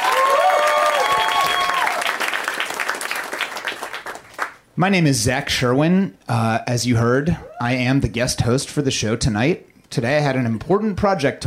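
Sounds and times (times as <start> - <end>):
live audience applause: 0.0 - 4.6
whistles: 1.0 - 1.9
speech: 4.8 - 11.4.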